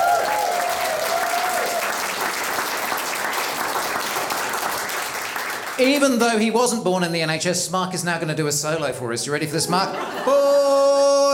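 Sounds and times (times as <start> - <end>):
crowd applauding: 0.0 - 6.2
speech: 5.8 - 10.9
laughter: 9.6 - 11.3.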